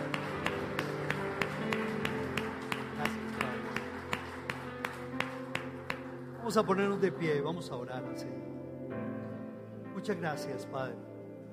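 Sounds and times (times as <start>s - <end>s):
audience applause: 0.0s - 7.0s
speech: 6.5s - 8.6s, 10.0s - 11.1s.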